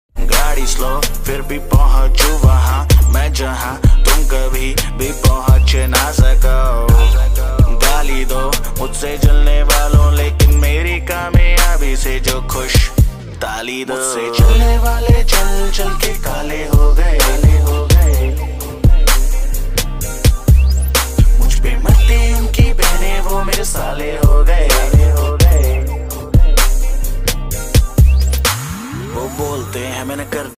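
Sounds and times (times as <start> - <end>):
Hindi rap ringtone: 0.2 - 30.5.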